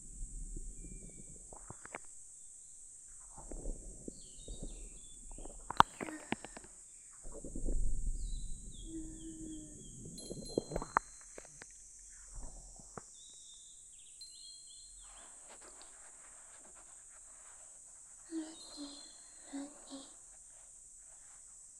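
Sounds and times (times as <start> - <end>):
ASMR ear massage sounds: 3.0 - 13.2, 15.0 - 21.7.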